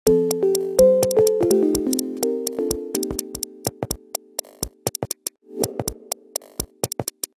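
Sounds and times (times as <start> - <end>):
Nokia 7710 phone ringtone: 0.1 - 3.6.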